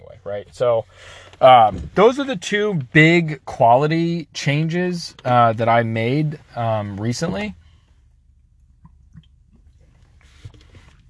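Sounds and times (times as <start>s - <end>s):
speech: 0.2s - 7.6s
person drinking water: 8.6s - 11.0s.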